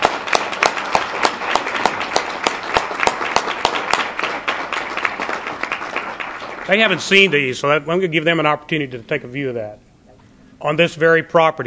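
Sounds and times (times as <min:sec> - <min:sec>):
crowd applauding: 0:00.0 - 0:07.8
speech: 0:06.7 - 0:09.8, 0:10.6 - 0:11.6.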